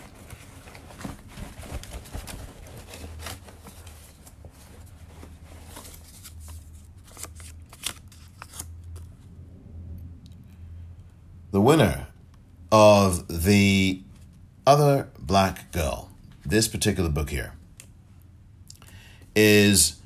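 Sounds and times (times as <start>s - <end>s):
hands rummaging through a bag to draw out a name: 0.0s - 6.8s
low hum: 0.0s - 20.0s
speech: 11.6s - 12.0s, 12.7s - 14.0s, 14.7s - 17.6s, 19.4s - 20.0s.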